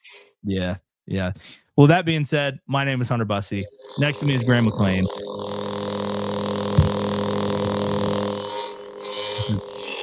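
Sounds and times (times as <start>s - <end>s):
speech: 0.4s - 5.6s
lightsaber humming: 3.5s - 10.0s.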